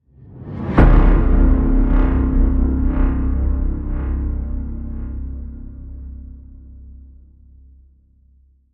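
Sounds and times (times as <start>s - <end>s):
reversed tonal hit: 0.5s - 6.6s.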